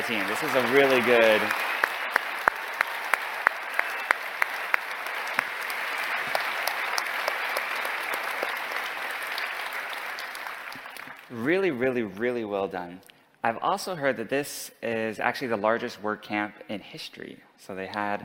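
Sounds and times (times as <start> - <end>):
crowd giving a warm round of applause: 0.0 - 11.3
speech: 0.1 - 1.8, 11.4 - 18.2.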